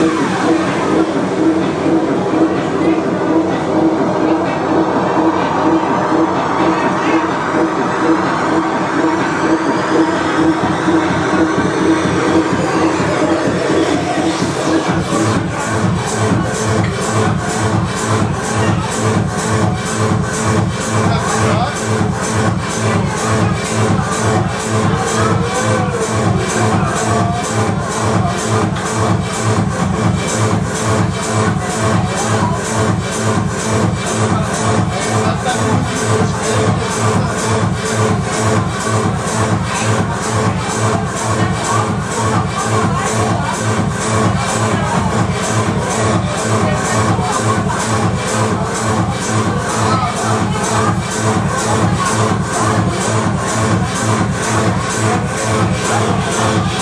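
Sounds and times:
techno music from Kreuzberg: 0.0s - 56.8s.

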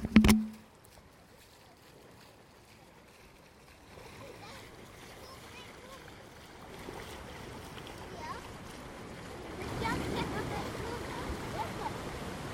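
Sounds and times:
water noises: 0.0s - 12.5s.

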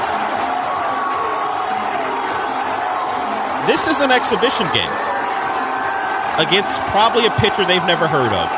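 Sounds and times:
stadium crowd cheering wildly: 0.0s - 8.5s
speech: 3.7s - 5.2s, 6.4s - 8.5s.

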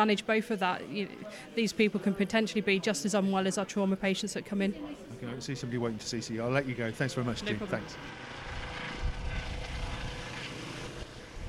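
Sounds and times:
speech: 0.0s - 8.3s
air ambulance helicopter departing: 5.4s - 11.4s.

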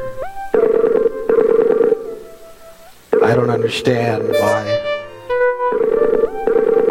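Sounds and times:
phone ringback tone: 0.6s - 2.1s, 4.4s - 6.8s
speech: 3.3s - 4.7s.

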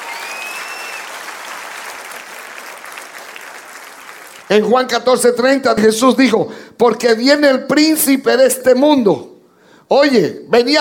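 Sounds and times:
whistle-like tone: 0.0s - 1.1s
audience applause: 0.0s - 4.5s
speech: 4.5s - 9.3s, 9.9s - 10.7s.

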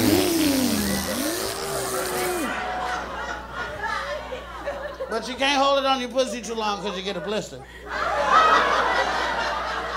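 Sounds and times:
voice imitating a power tool motor revving up: 0.0s - 2.5s
laughter: 0.1s - 5.3s, 6.2s - 9.9s
speech: 5.2s - 8.3s.

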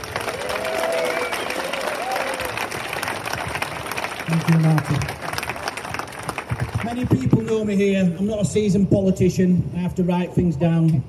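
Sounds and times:
audience applause: 0.0s - 7.5s
speech: 4.3s - 5.2s, 6.9s - 11.0s.

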